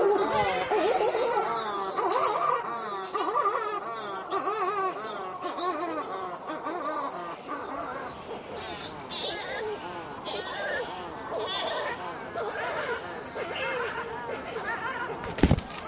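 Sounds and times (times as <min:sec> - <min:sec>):
chorus of wavering bleating bird calls: 0:00.0 - 0:15.8
bird thumping into the microphone: 0:15.2 - 0:15.8.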